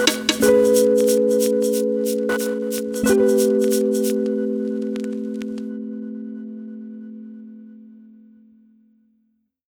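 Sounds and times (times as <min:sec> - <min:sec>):
rap beat: 0:00.0 - 0:04.3.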